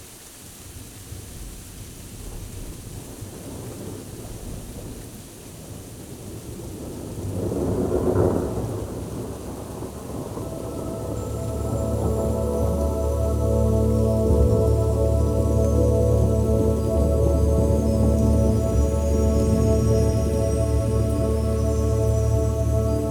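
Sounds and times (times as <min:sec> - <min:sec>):
thunderstorm: 0:01.2 - 0:22.1
healing music: 0:10.1 - 0:23.0.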